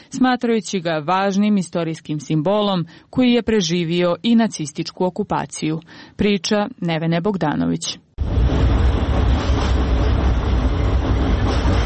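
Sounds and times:
speech: 0:00.1 - 0:08.1
tram rumbling across an old bridge over the Sava river in a capital city: 0:08.2 - 0:11.8.

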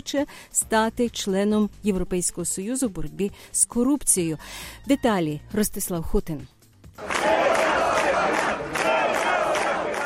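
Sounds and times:
speech: 0:00.0 - 0:07.5
crowd gathered outside a courthouse roaring and shouting: 0:07.0 - 0:10.0.

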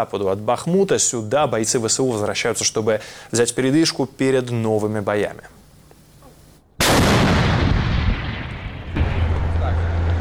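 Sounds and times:
speech: 0:00.0 - 0:05.6
tank gun firing from covered position: 0:06.8 - 0:10.1.

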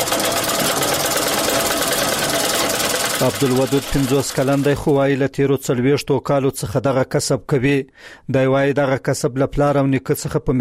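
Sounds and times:
sewing machine stitching a sheepskin coat: 0:00.0 - 0:05.1
speech: 0:03.2 - 0:10.6.

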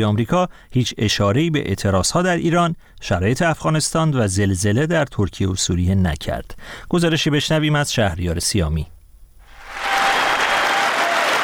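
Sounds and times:
speech: 0:00.0 - 0:09.0
applause for Joe Biden in the US Congress before his annual address: 0:09.6 - 0:11.4.

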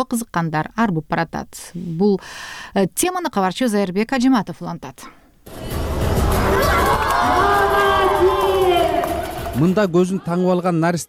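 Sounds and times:
speech: 0:00.0 - 0:05.8, 0:09.6 - 0:11.0
spectators cheering and shouting at a girls' football match: 0:05.7 - 0:10.4.

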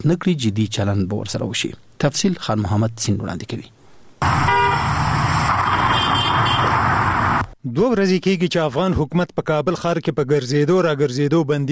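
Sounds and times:
speech: 0:00.0 - 0:04.5, 0:07.6 - 0:11.7
car horn tooting: 0:04.2 - 0:06.9
cars and trucks in busy city street traffic in Kabul: 0:04.2 - 0:07.6.

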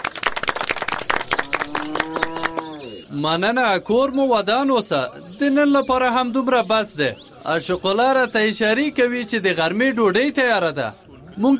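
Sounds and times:
people clapping at a village gathering: 0:00.0 - 0:02.9
speech: 0:01.7 - 0:02.4, 0:03.1 - 0:11.5.

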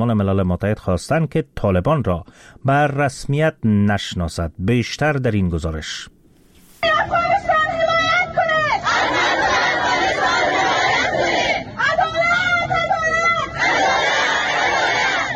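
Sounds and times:
speech: 0:00.0 - 0:06.2
steady crowd noise: 0:06.8 - 0:15.3
Afghan women chanting slogans at a protest in Islamabad: 0:08.6 - 0:12.0, 0:12.8 - 0:15.3.

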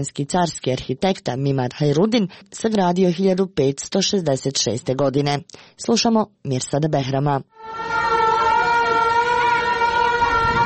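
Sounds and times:
speech: 0:00.0 - 0:08.0
general-danger air raid siren in Herzegovina on a cold windy day: 0:07.5 - 0:10.6.

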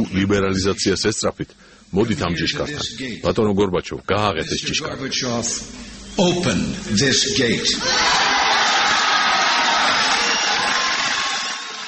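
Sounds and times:
speech: 0:00.0 - 0:08.3
crowd ovation during Reagan's Berlin Wall speech: 0:08.0 - 0:11.8.

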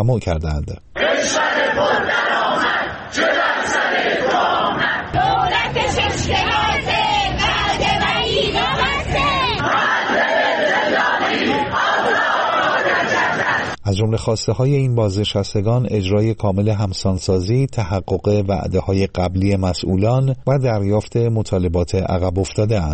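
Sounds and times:
speech: 0:00.0 - 0:03.8, 0:13.9 - 0:22.9
protesting retirees rally crowd chanting and shouting: 0:01.0 - 0:13.8.

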